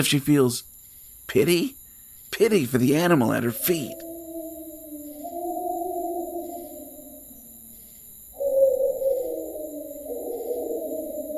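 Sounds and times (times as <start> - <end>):
speech: 0.0 - 0.7, 1.3 - 4.0
wolves howling: 3.6 - 7.8, 8.4 - 11.3.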